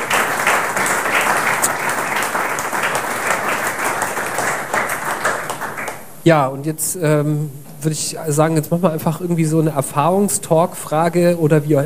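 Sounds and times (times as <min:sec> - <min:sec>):
audience applause: 0:00.0 - 0:06.1
speech: 0:06.3 - 0:11.8.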